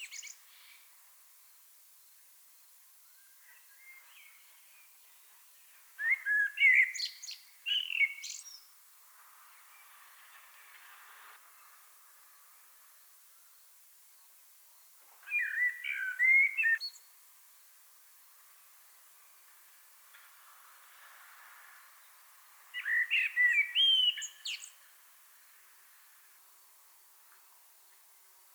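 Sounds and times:
common blackbird singing fluted whistles: 6.0 - 8.5, 15.3 - 16.9, 22.7 - 24.7.

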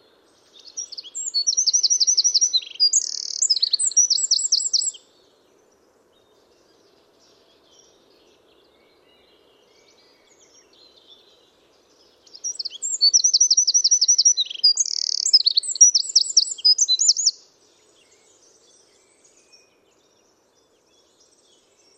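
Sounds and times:
Eurasian wren singing: 0.5 - 5.0, 12.1 - 17.4.

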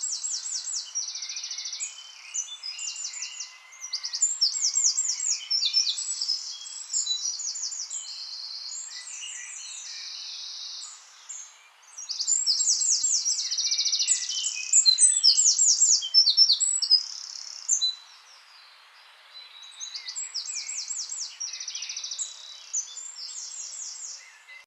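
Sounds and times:
Eurasian wren singing: 0.0 - 18.1, 19.4 - 24.6.

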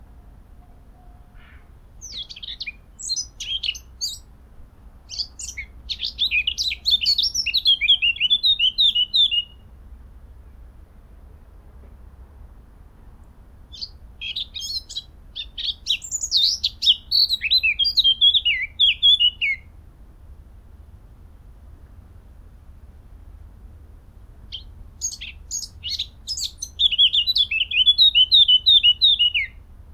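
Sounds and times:
Eurasian blackcap singing: 2.0 - 4.3, 5.1 - 9.6, 13.7 - 19.7, 24.5 - 29.6.

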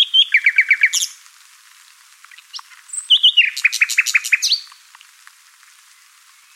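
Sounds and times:
Common nightingale song: 0.0 - 1.2, 2.3 - 4.8.

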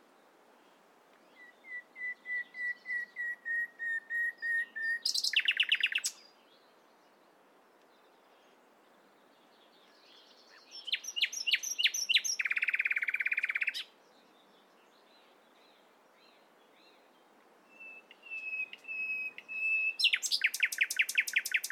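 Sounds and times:
Common nightingale Luscinia megarhynchos whistled song: 1.2 - 6.8, 9.8 - 13.9, 15.2 - 21.7.

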